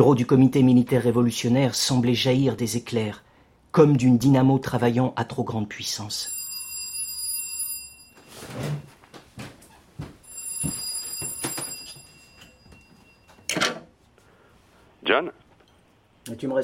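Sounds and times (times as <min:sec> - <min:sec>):
speech: 0:00.0 - 0:06.4, 0:16.3 - 0:16.6
telephone ringing: 0:06.2 - 0:09.0, 0:10.2 - 0:13.6.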